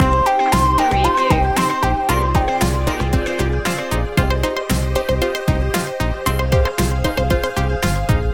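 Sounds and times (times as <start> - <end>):
alarming news music loop: 0.0 - 8.3.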